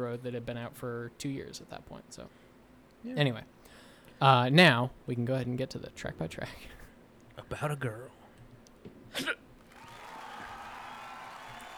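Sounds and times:
speech: 0.0s - 2.4s, 3.0s - 3.6s, 4.2s - 6.8s, 7.4s - 8.2s, 9.1s - 9.4s
live audience cheering: 9.6s - 11.7s.

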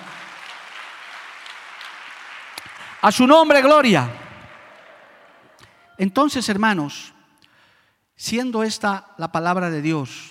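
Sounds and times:
audience applause: 0.0s - 5.8s
speech: 3.0s - 4.2s, 6.0s - 7.2s, 8.2s - 10.2s.

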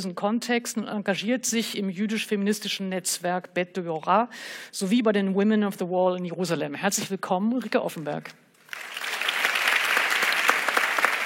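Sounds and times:
speech: 0.0s - 8.9s
audience applause: 8.7s - 11.2s.

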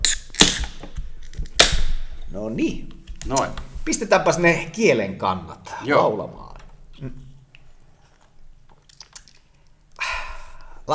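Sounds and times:
drink can being opened with a fizz: 0.0s - 2.3s, 2.9s - 4.0s, 6.8s - 10.8s
speech: 2.4s - 6.4s, 7.0s - 7.2s.

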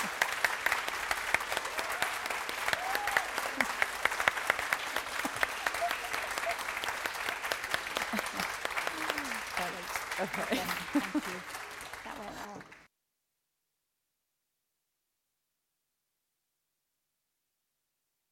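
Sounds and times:
warm round of applause at a School of Art and Design event: 0.0s - 12.9s
laughter: 4.8s - 7.0s, 7.6s - 12.7s
speech: 10.2s - 11.6s.

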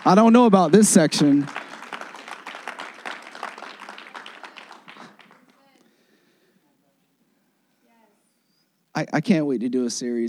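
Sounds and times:
speech: 0.0s - 1.6s, 9.0s - 10.2s
audience clapping: 0.0s - 6.1s.

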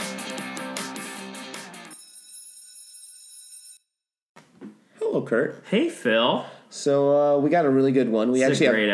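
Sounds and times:
bell ringing rapidly: 1.9s - 3.8s
speech: 5.3s - 8.9s.

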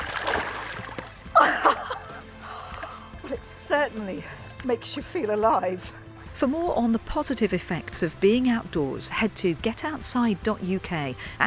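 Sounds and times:
splash of someone getting into water for wild swimming: 0.0s - 1.4s
water sloshing: 0.0s - 2.0s
laughter: 1.3s - 2.9s
speech: 3.7s - 11.4s.

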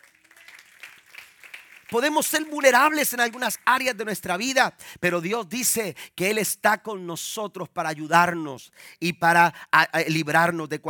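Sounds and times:
audience applause: 0.0s - 3.7s
speech: 1.9s - 10.8s.

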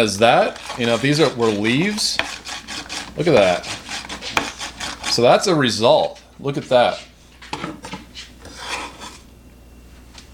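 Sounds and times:
speech: 0.0s - 2.5s, 3.2s - 4.4s, 5.2s - 7.1s
knife mincing herbs such as basil, oregano, thyme or rosemary: 0.5s - 5.3s.

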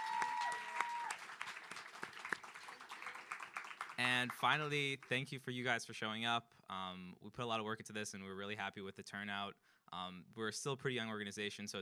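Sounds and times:
audience round of applause: 0.0s - 5.2s
speech: 4.0s - 11.7s.

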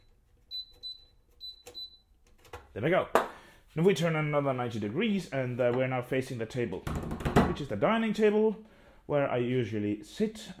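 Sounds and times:
oven temperature dial error beep: 0.0s - 2.1s
speech: 2.8s - 10.5s.

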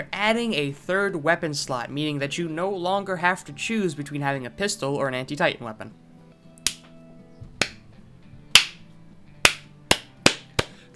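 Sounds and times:
speech: 0.0s - 6.0s
single person clapping hands: 6.6s - 6.9s, 7.6s - 7.8s, 8.6s - 8.8s, 9.4s - 10.8s.

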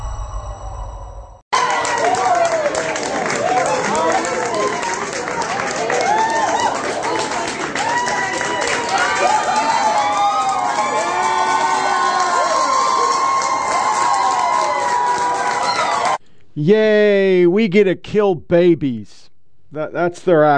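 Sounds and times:
crowd cheering and shouting in celebration after a strict abortion law was blocked: 1.6s - 16.2s
speech: 16.6s - 20.5s.

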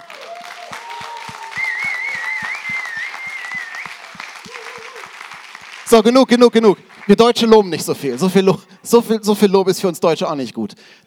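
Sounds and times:
audience applause: 0.0s - 8.5s
speech: 5.9s - 11.0s.

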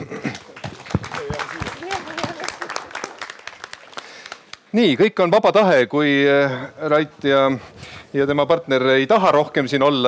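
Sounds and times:
audience applause: 0.0s - 4.7s
speech: 4.7s - 10.0s.

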